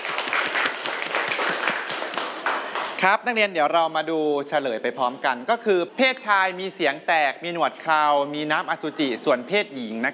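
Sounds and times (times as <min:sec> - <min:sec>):
students clapping for a classmate: 0:00.0 - 0:03.1
speech: 0:03.0 - 0:10.1.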